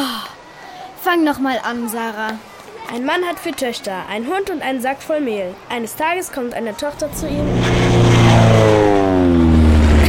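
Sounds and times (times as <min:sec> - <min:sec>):
speech: 0:01.0 - 0:08.1
yellow biplane flying overhead: 0:06.9 - 0:10.0.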